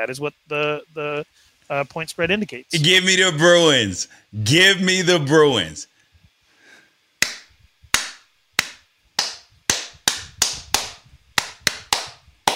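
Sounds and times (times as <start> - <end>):
speech: 0.0 - 5.9
hand claps: 7.2 - 12.5.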